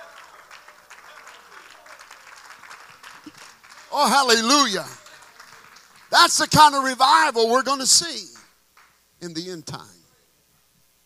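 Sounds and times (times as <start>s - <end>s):
audience clapping: 0.0s - 9.0s
speech: 3.3s - 5.0s, 6.2s - 8.4s, 9.2s - 10.0s.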